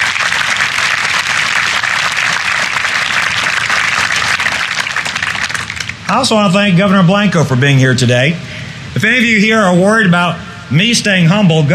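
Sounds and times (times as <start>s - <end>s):
applause: 0.0s - 6.1s
speech: 6.1s - 11.7s.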